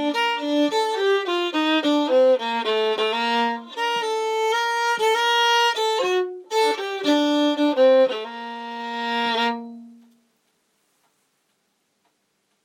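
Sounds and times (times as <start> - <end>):
folk polska tune: 0.0 - 10.0.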